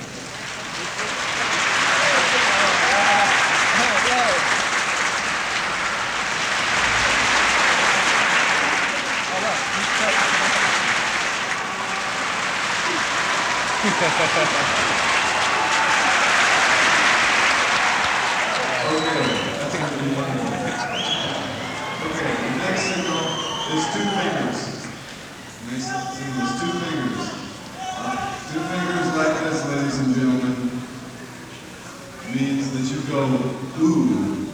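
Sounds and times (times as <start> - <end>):
audience practising moving its applause around the room: 0.0 - 34.5
laughter: 6.7 - 25.3
speech: 14.0 - 14.8.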